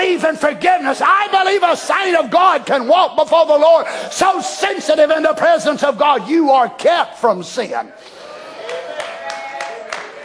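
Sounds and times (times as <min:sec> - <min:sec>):
speech: 0:00.2 - 0:08.2
audience clapping hands softly: 0:08.6 - 0:10.2.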